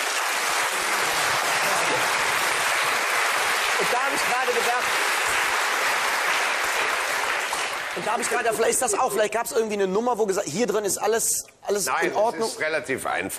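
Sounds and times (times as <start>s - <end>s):
applause: 0.0s - 9.3s
speech: 3.8s - 5.1s, 8.0s - 13.3s.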